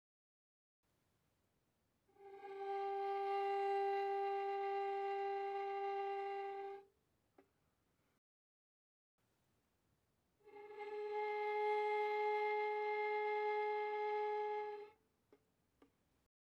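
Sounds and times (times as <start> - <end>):
violin bowed softly on the G string: 2.2 - 6.8, 10.4 - 15.0.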